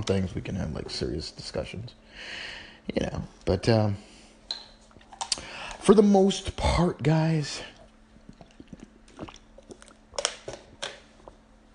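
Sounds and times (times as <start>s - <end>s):
speech: 0.0s - 4.1s, 5.8s - 7.7s
person drinking water: 7.6s - 11.7s.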